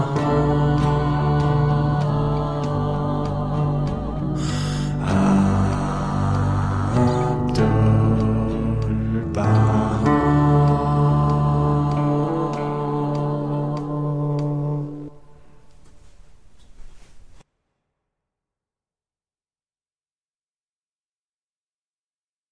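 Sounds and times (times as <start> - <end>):
bass: 0.0 - 15.4
choral music: 0.0 - 16.6.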